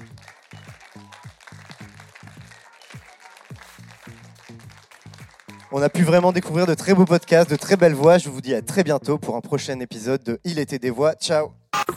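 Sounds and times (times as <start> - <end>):
audience applause: 0.0 - 8.1
speech: 5.7 - 11.6.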